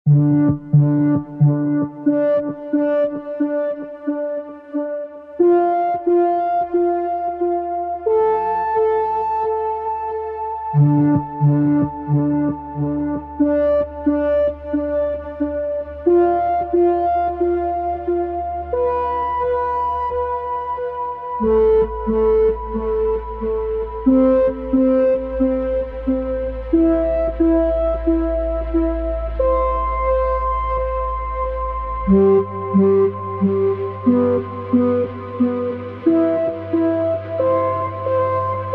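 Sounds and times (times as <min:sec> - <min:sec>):
electronic music: 0:00.1 - 0:38.7.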